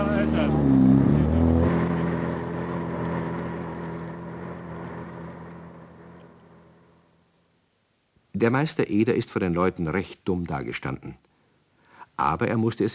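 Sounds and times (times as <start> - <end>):
elegant motorboat towing a sailboat: 0.0 - 7.1
speech: 0.2 - 1.1, 8.4 - 11.3, 12.2 - 12.9.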